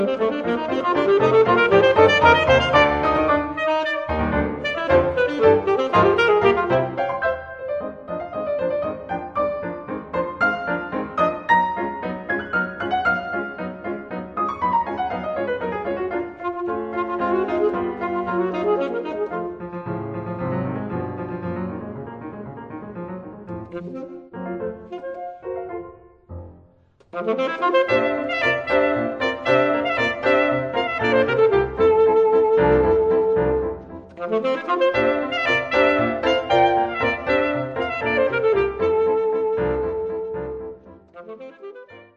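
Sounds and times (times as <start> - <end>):
saxophone sonata: 0.0 - 21.9, 23.4 - 26.4, 27.0 - 42.1.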